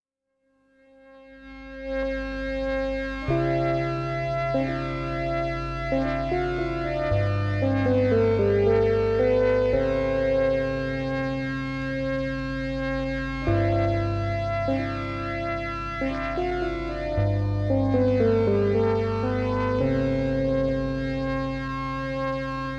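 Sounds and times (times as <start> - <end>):
instrumental music: 1.2 - 22.7.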